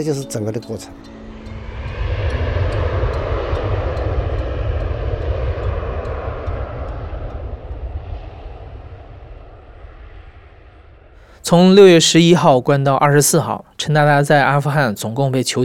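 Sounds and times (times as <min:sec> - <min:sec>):
speech: 0:00.0 - 0:01.2, 0:11.5 - 0:15.6
airplane engine roaring: 0:00.0 - 0:12.2.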